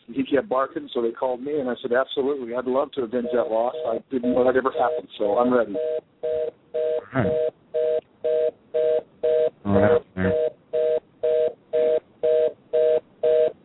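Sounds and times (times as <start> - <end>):
speech: 0.1 - 7.5, 9.7 - 10.0
telephone busy signal: 3.2 - 13.6.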